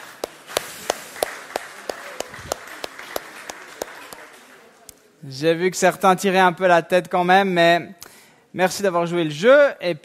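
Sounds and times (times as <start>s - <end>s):
group applauding: 0.0s - 5.1s
speech: 5.2s - 10.0s.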